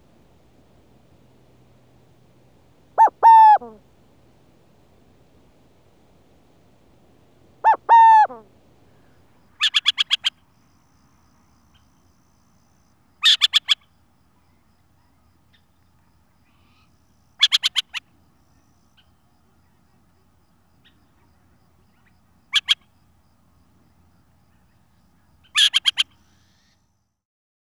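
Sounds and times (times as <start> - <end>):
burrowing owl calling: 3.0 - 3.8, 7.6 - 10.4, 13.2 - 13.9, 16.5 - 18.1, 22.0 - 22.9, 25.4 - 26.8.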